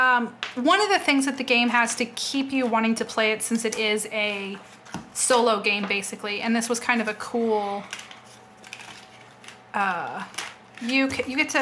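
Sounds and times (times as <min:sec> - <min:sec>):
speech: 0:00.2 - 0:08.1, 0:09.8 - 0:11.6
light plastic game cards clattering as they are tossed during a solo board game: 0:07.8 - 0:11.4.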